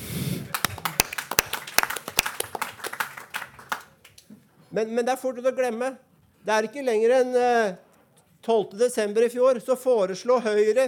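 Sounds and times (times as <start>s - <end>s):
audience clapping: 0.5s - 4.3s
speech: 4.8s - 7.8s, 8.4s - 10.8s.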